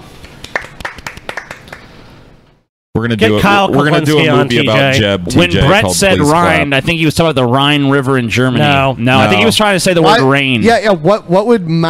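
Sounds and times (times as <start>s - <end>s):
hands clapping: 0.2s - 1.9s
speech: 3.0s - 11.8s.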